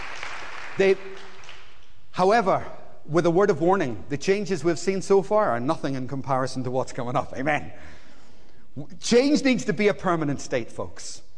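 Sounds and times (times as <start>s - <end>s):
crowd applause: 0.0s - 1.8s
speech: 0.8s - 1.2s, 2.2s - 8.0s, 8.8s - 11.3s.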